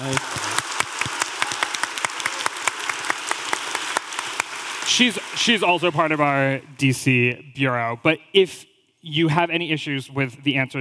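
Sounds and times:
speech: 0:00.0 - 0:00.5, 0:04.9 - 0:10.7
audience applause: 0:00.0 - 0:07.0.

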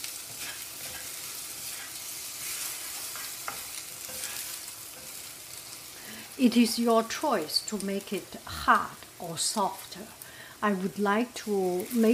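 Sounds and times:
bamboo spatula stirring and scraping a pan: 0:00.0 - 0:06.4
food sizzling in a pan: 0:00.0 - 0:12.1
speech: 0:06.4 - 0:12.1.

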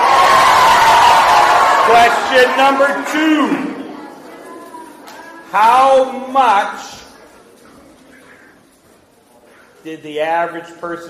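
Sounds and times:
children cheering: 0:00.0 - 0:03.9
speech: 0:01.9 - 0:03.7, 0:05.5 - 0:07.0, 0:09.8 - 0:11.0.

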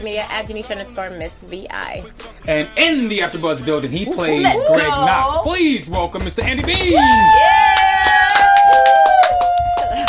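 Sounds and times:
speech: 0:00.0 - 0:07.6
slow clap: 0:07.2 - 0:10.0.

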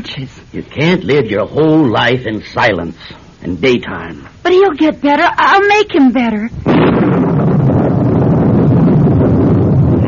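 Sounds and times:
speech: 0:00.0 - 0:07.2
storm wind: 0:06.5 - 0:10.0.

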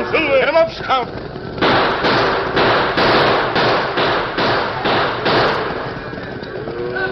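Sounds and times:
stampeding cattle rumbling: 0:00.0 - 0:07.0
speech: 0:00.7 - 0:01.3
gunshots to turn stampeding cattle: 0:01.6 - 0:06.2.

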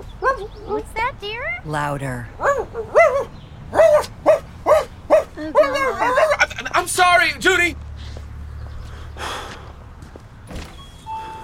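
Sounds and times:
speech: 0:00.4 - 0:03.8, 0:05.4 - 0:07.8
person imitating a dog barking and howling: 0:02.4 - 0:06.6.

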